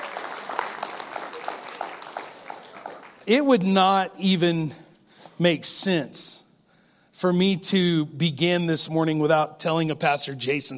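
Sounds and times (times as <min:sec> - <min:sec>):
audience applause: 0:00.0 - 0:03.3
speech: 0:03.3 - 0:04.8, 0:05.4 - 0:06.4, 0:07.2 - 0:10.7.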